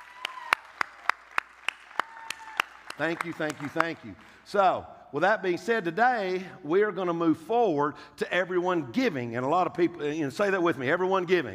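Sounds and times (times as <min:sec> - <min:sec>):
audience clapping in unison: 0:00.0 - 0:04.5
speech: 0:03.0 - 0:11.5.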